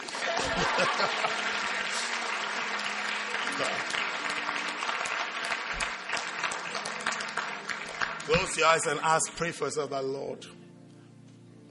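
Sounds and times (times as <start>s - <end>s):
laughter: 0.0s - 2.7s
audience clapping: 0.0s - 10.0s
speech: 0.6s - 1.5s, 3.6s - 4.0s, 8.3s - 10.6s.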